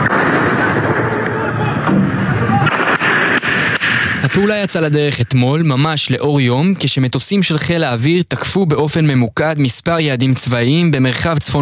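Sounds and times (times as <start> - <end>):
gunfire from a vehicle during arrest: 0.0 - 4.7
speech: 4.4 - 11.6.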